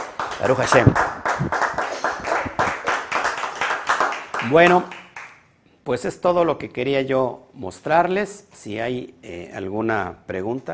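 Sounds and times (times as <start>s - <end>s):
applause: 0.0s - 5.4s
speech: 0.4s - 1.8s, 4.4s - 5.0s, 5.8s - 10.7s.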